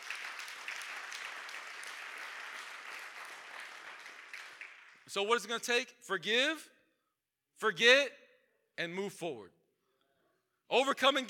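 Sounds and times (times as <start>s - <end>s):
audience clapping: 0.0s - 5.1s
speech: 5.1s - 6.8s, 7.6s - 8.2s, 8.8s - 9.6s, 10.7s - 11.2s.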